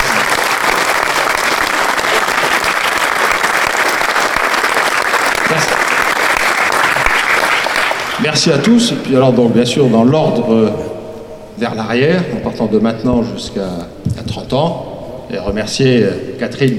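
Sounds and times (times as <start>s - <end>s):
warm applause from audience: 0.0s - 8.4s
speech: 8.2s - 10.9s, 11.6s - 16.7s.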